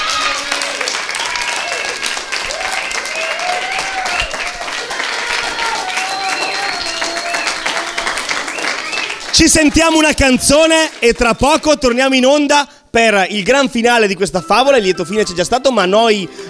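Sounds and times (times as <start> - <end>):
applause: 0.0 - 12.2
speech: 9.4 - 16.4.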